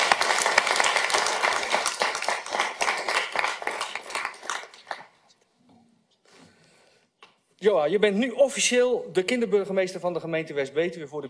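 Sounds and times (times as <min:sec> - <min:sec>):
audience applause in a hall: 0:00.0 - 0:05.1
speech: 0:07.6 - 0:11.2.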